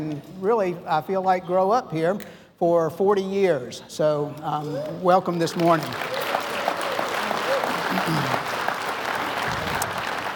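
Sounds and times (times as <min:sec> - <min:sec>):
speech: 0:00.0 - 0:06.2
audience clapping: 0:05.4 - 0:10.3.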